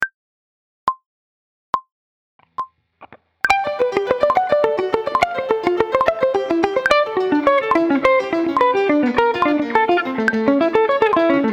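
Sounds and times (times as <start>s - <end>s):
guitar alternate picking: 3.5s - 11.5s.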